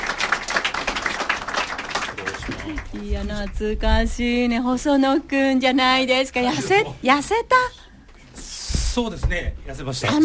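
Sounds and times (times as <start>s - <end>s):
audience clapping to welcome two guests at a Japanese event: 0.0s - 3.7s
speech: 3.0s - 7.8s, 9.0s - 10.2s.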